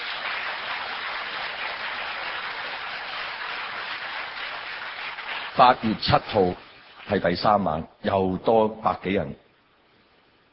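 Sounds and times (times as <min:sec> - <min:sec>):
crowd applauding: 0:00.0 - 0:06.0
speech: 0:05.6 - 0:09.4.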